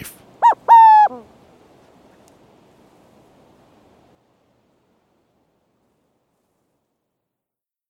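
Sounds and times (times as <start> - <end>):
burrowing owls hissing: 0.4 - 1.3.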